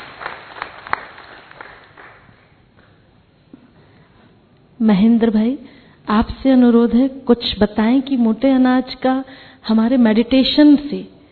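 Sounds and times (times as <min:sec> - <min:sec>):
audience clapping to welcome a visiting farmer: 0:00.0 - 0:03.0
speech: 0:04.8 - 0:11.1.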